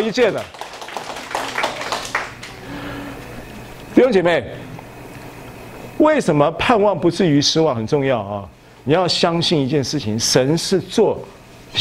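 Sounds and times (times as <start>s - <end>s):
speech: 0.0s - 0.6s, 4.0s - 4.7s, 6.0s - 11.8s
audience clapping: 0.0s - 2.8s.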